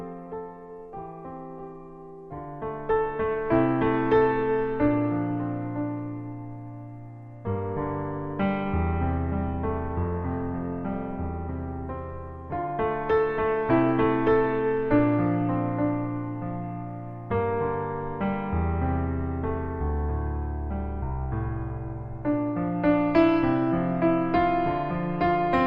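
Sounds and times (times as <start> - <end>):
solo piano piece: 0.0 - 25.6.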